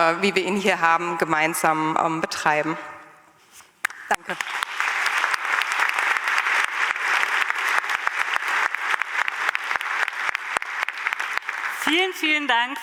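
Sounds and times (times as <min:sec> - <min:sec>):
speech: 0:00.0 - 0:02.9, 0:04.3 - 0:04.6, 0:11.9 - 0:12.8
audience applause: 0:03.9 - 0:12.2.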